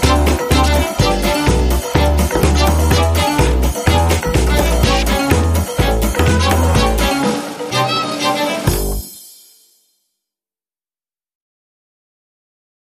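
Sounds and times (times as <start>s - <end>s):
instrumental music mix without vocals or glockenspiel: 0.0s - 10.0s.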